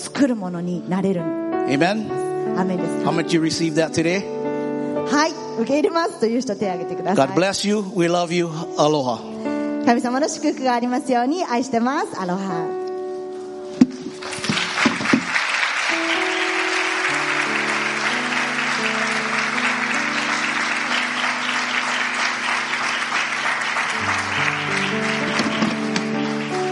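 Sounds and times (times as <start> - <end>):
speech: 0.2 - 4.4, 5.0 - 9.3, 9.9 - 12.8
audience applause: 13.9 - 26.7.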